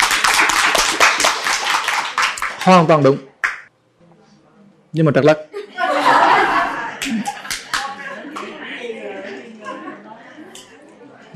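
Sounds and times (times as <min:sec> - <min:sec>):
audience clapping: 0:00.0 - 0:03.7, 0:07.0 - 0:08.5
speech: 0:02.6 - 0:03.3, 0:04.9 - 0:05.5
laughter: 0:05.5 - 0:11.3.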